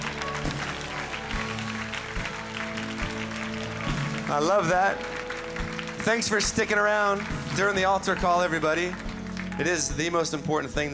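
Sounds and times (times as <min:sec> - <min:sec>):
audience cheering: 0:00.0 - 0:09.0
speech: 0:04.3 - 0:05.2, 0:06.0 - 0:09.0, 0:09.6 - 0:10.9.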